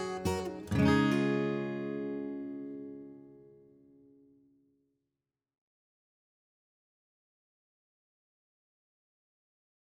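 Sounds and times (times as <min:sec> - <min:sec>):
acoustic guitar playing: 0:00.0 - 0:04.5.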